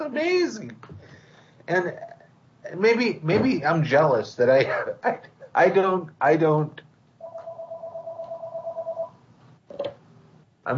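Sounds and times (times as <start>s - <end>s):
speech: 0.1s - 0.9s, 1.7s - 2.1s, 2.7s - 6.8s
telephone ringing with a steady electronic tone: 7.2s - 9.2s.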